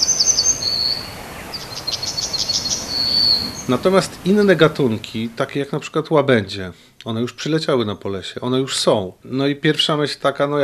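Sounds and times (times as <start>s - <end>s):
yellowhammer singing: 0.0s - 5.4s
speech: 0.8s - 1.2s, 3.4s - 10.6s.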